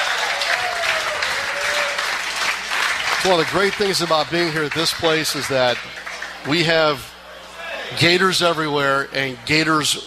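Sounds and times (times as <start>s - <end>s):
audience applause in a room of Florida Gators supporters: 0.0s - 6.7s
speech: 3.2s - 7.1s, 7.9s - 10.0s.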